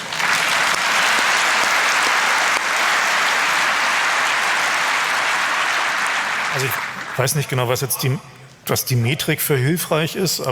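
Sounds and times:
crowd applauding: 0.0s - 8.1s
speech: 6.6s - 10.5s.

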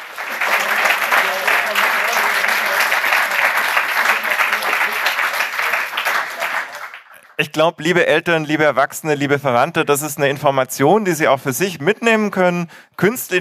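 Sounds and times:
audience applause: 0.0s - 7.5s
speech: 7.4s - 13.3s.

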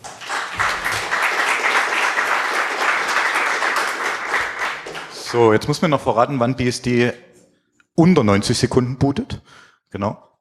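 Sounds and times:
applause: 0.0s - 5.8s
speech: 5.3s - 7.3s, 8.0s - 10.3s.

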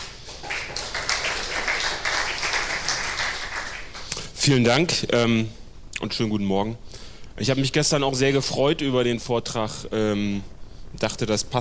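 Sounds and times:
audience applause: 0.0s - 4.1s
speech: 4.4s - 11.5s.

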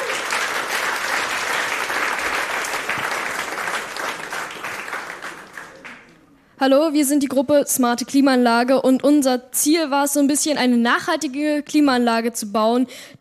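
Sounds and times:
applause: 0.0s - 6.2s
speech: 6.6s - 13.2s.

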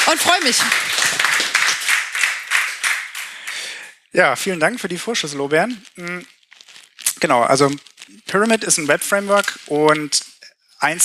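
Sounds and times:
audience applause at a talk: 0.0s - 3.9s
speech: 0.1s - 1.4s, 4.1s - 6.3s, 7.2s - 11.0s.

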